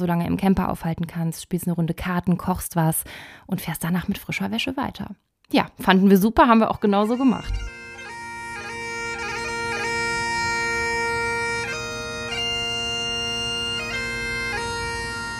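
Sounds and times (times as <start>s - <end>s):
speech: 0.0s - 7.8s
bagpipe played by a piper in Edinburgh: 6.4s - 15.3s.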